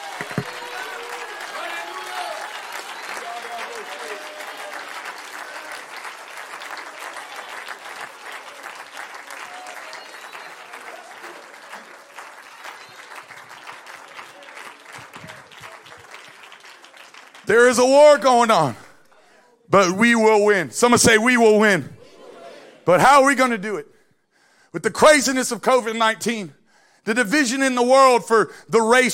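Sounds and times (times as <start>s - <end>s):
audience clapping hands: 0.0s - 19.3s
speech: 17.5s - 18.8s, 19.7s - 21.9s, 22.9s - 23.9s, 24.7s - 29.1s
murmur of voices: 22.0s - 22.9s.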